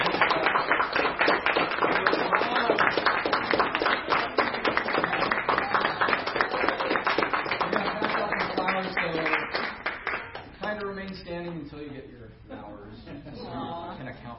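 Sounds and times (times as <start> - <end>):
round of applause: 0.0 - 10.5.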